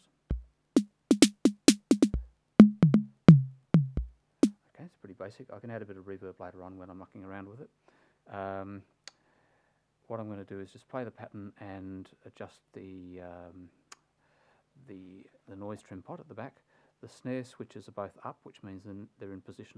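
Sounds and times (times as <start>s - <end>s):
TR-606 drum machine noise snare: 0.3s - 4.1s.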